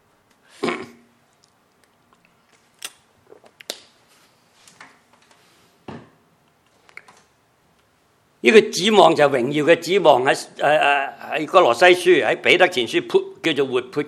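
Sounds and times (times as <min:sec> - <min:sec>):
person sipping and swallowing water: 0:00.6 - 0:03.7
speech: 0:08.4 - 0:14.0.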